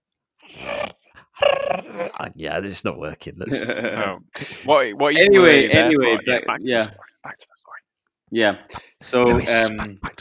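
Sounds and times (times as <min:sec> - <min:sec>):
voice imitating crickets chirping: 0:00.5 - 0:02.3, 0:06.5 - 0:07.9
speech: 0:02.2 - 0:07.6, 0:08.3 - 0:10.1.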